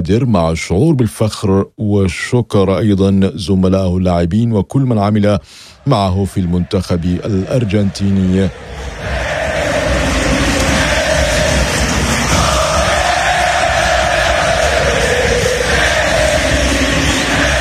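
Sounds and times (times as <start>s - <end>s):
speech: 0.0s - 9.3s
huge stadium crowd roaring and cheering: 5.2s - 17.5s.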